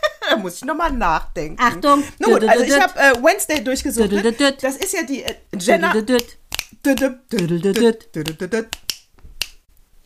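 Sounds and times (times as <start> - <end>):
speech: 0.3 - 8.8
person vocalizing: 3.6 - 9.0
crisp finger snapping: 6.2 - 9.6.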